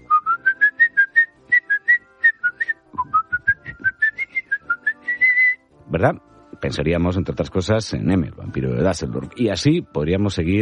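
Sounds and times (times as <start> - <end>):
person whistling a film melody: 0.0 - 5.7
speech: 5.9 - 10.6.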